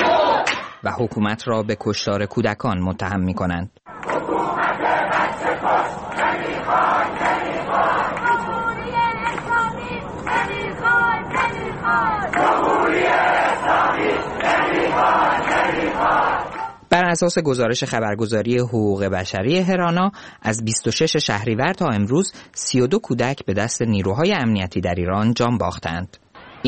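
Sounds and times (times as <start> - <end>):
crowd of protesters chanting anti-dictatorship slogans in the streets of Ekbatan, Iran: 0.0 - 0.8, 3.9 - 16.8
speech: 0.8 - 3.8, 11.9 - 26.6.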